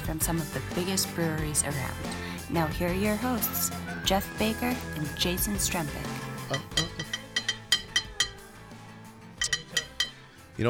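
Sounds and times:
speech: 0.1 - 6.9
hand slapping a drinking glass: 6.5 - 8.4, 9.4 - 10.2.

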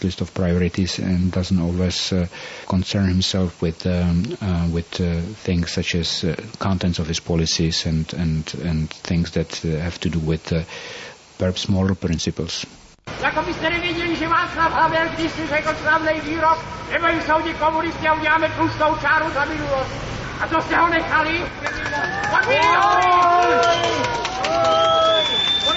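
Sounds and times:
speech: 0.0 - 25.7
angry crowd demonstrating: 14.5 - 25.7.

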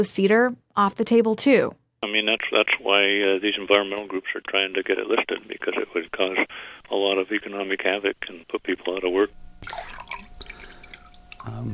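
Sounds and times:
speech: 0.0 - 10.0, 11.4 - 11.7
water dripping into a bowl of warm water with cedar bark strip: 9.6 - 11.7.

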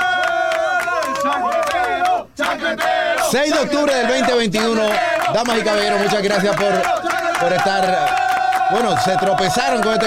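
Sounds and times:
applause: 0.0 - 2.2, 4.6 - 10.0
speech: 2.6 - 10.0.

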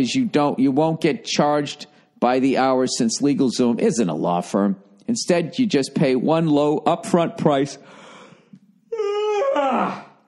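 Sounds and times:
speech: 0.0 - 8.0, 9.6 - 10.0
person yawning: 8.9 - 10.2.

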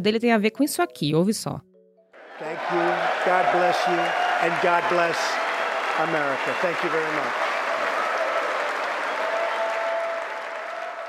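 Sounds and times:
speech: 0.0 - 1.7, 2.4 - 5.4, 6.0 - 7.4
faint cheers and whistles: 2.2 - 11.0
sustained applause from a large crowd after a political speech: 2.2 - 11.0.

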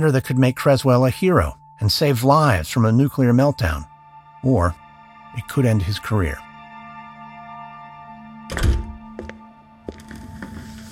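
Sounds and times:
speech: 0.0 - 6.5
door closing: 8.5 - 9.4.

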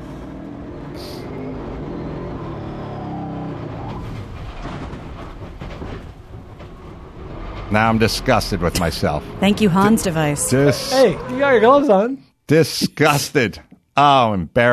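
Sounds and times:
car driving slowly, engine rumble: 0.0 - 11.4
road noise: 0.0 - 12.2
speech: 7.7 - 14.7.

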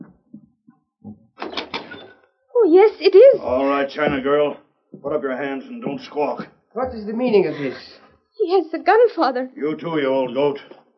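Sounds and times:
door opening: 1.1 - 2.3
speech: 2.7 - 10.8.

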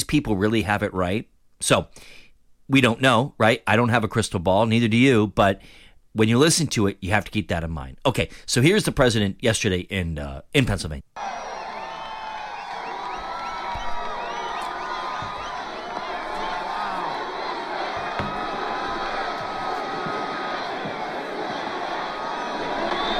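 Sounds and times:
speech: 0.0 - 11.4
whoops and whistles: 11.2 - 16.6, 22.4 - 23.1
rally crowd cheering and shouting: 11.2 - 23.1.

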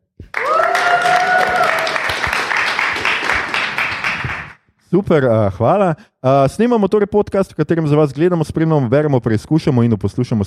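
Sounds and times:
whoops and cheering voices: 0.3 - 2.4
live audience applauding: 0.3 - 4.6
speech: 4.9 - 10.4.

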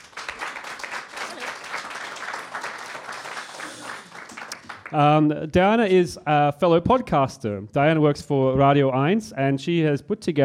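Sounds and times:
audience at a live show in Berlin clapping to welcome a guest: 0.0 - 5.3
speech: 4.9 - 10.4.

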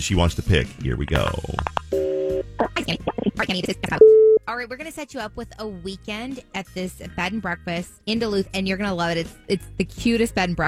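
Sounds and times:
speech: 0.0 - 2.0, 2.9 - 10.6
telephone call tone: 1.9 - 2.4, 4.0 - 4.4.

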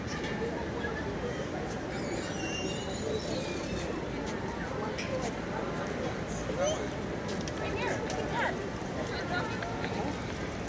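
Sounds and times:
crowd chatter in Washington Square Park: 0.0 - 10.6.

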